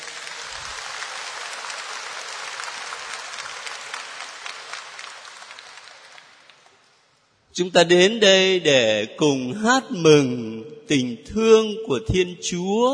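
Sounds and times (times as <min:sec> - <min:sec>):
audience applause: 0:00.0 - 0:06.9
speech: 0:07.6 - 0:12.9.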